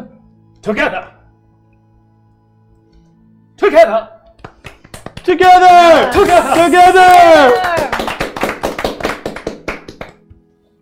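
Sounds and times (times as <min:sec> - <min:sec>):
speech: 0:00.6 - 0:01.2, 0:03.7 - 0:04.2, 0:05.3 - 0:08.0
applause: 0:04.4 - 0:10.2.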